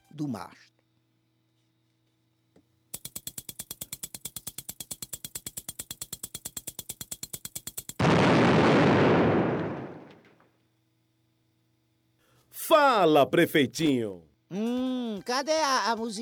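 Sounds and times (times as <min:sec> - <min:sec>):
speech: 0:00.2 - 0:00.8, 0:12.8 - 0:16.2
loud sustained roaring firecracker blast: 0:08.0 - 0:10.2
firecracker string popping: 0:08.0 - 0:10.3.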